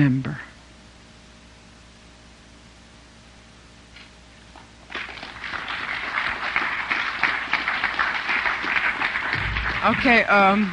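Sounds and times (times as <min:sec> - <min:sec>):
speech: 0:00.0 - 0:00.5, 0:09.9 - 0:10.7
audience applauding after a poem: 0:04.9 - 0:10.7.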